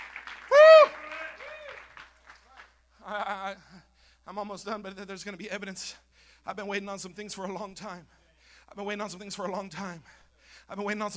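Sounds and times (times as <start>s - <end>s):
audience clapping hands: 0.0s - 2.8s
speech: 3.1s - 11.1s.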